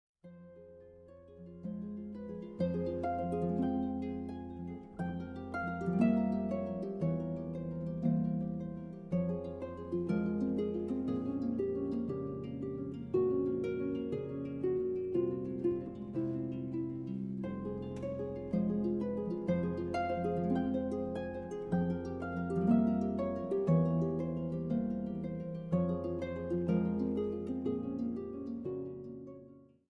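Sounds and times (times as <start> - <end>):
harp: 0.2 - 29.8.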